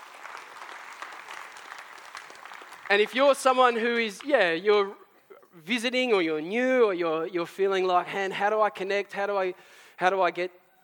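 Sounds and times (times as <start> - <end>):
audience applause: 0.0 - 3.4
speech: 2.9 - 5.0, 5.6 - 10.6.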